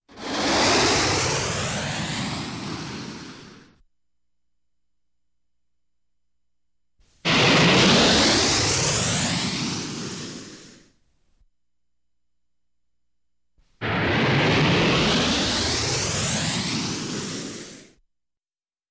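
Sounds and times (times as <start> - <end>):
medium rocket whoosh: 0.1 - 3.8, 7.1 - 11.0, 13.8 - 18.0.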